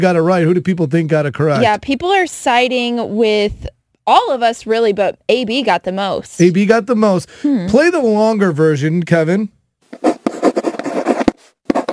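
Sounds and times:
speech: 0:00.0 - 0:10.1
pen scratching across paper writing a love letter: 0:09.9 - 0:11.9.

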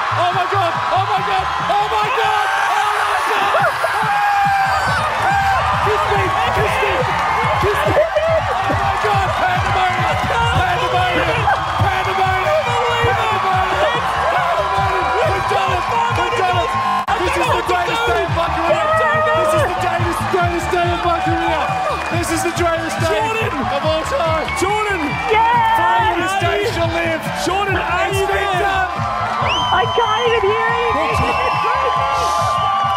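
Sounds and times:
large crowd cheering: 0:00.0 - 0:32.9
speech: 0:00.2 - 0:02.6
scattered whoops and shouts: 0:01.8 - 0:20.0, 0:28.4 - 0:32.9
laughter: 0:03.2 - 0:04.7, 0:05.9 - 0:24.5, 0:25.3 - 0:28.8, 0:30.6 - 0:32.5.

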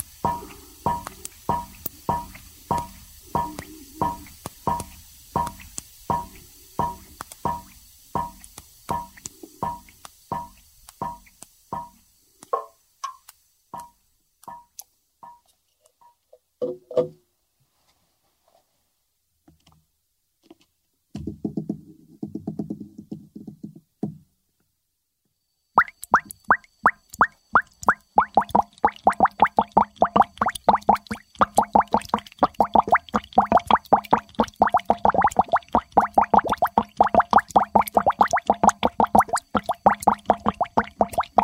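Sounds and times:
gas bubbles popping at water surface in a chemistry experiment: 0:00.0 - 0:10.5, 0:25.8 - 0:41.4.

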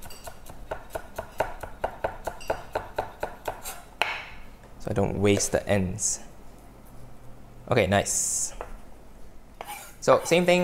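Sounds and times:
knife chopping spring onions into thin slices on a board: 0:00.0 - 0:04.4
speech: 0:04.9 - 0:06.3, 0:07.7 - 0:08.6, 0:10.0 - 0:10.6.

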